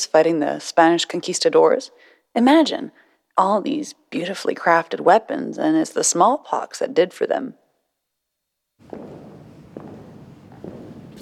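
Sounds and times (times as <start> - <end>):
speech: 0.0 - 7.6, 8.8 - 9.2
footsteps of someone walking past museum dioramas: 8.8 - 11.1
steady hiss: 8.8 - 11.1.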